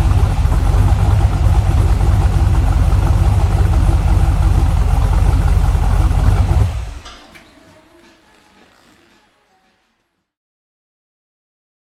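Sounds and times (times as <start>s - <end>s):
Corvette engine: 0.0s - 7.1s.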